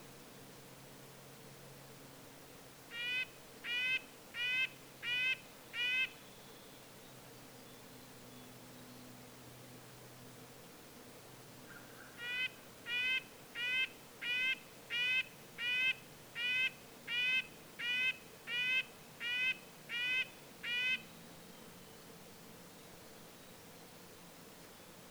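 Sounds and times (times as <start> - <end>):
red-breasted nuthatch nasal horn-like calls: 2.9 - 6.2, 11.7 - 21.1.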